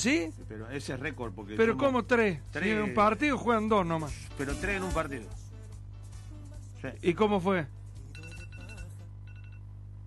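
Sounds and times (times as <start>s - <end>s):
speech: 0.0s - 5.4s, 6.8s - 7.8s
phone alarm ringing: 8.2s - 9.7s.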